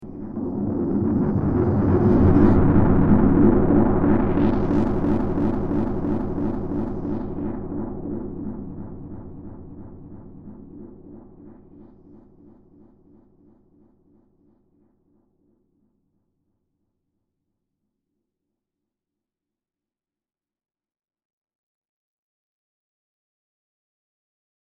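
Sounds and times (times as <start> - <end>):
seismic swell: 0.0 - 10.6.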